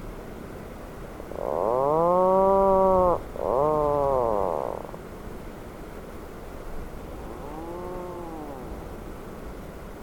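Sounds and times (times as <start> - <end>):
Atlantic puffin groaning call: 1.4 - 5.0, 7.2 - 8.9.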